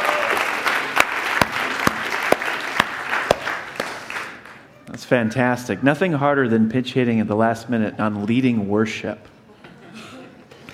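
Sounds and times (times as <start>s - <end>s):
audience applause: 0.0s - 4.6s
speech: 5.1s - 9.3s.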